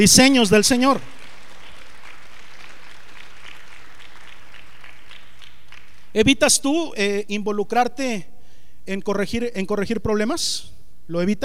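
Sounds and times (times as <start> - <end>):
speech: 0.0 - 1.1, 6.1 - 11.4
audience applauding: 0.6 - 6.2.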